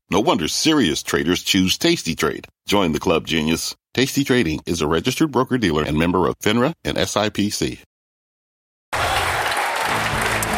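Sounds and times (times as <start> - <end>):
speech: 0.1 - 7.9
stock exchange closing bell applause: 9.0 - 10.5.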